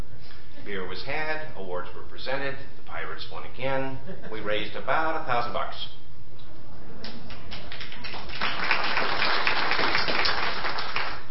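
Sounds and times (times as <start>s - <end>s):
speech: 0.7s - 6.0s
crowd applauding: 7.0s - 11.3s.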